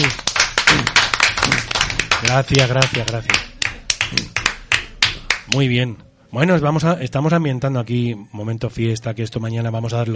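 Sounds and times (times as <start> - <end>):
small group clapping: 0.0 - 5.7
speech: 2.3 - 3.5, 4.1 - 4.3, 5.5 - 10.1.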